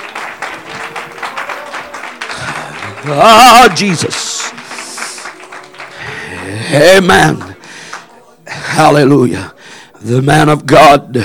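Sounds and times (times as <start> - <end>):
audience clapping hands: 0.0 - 8.1
speech: 3.0 - 4.3, 6.7 - 7.5, 8.8 - 11.2.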